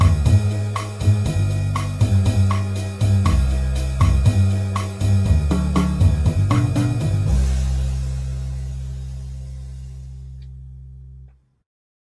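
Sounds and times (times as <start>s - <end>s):
piano and guitar jazz: 0.0s - 9.4s.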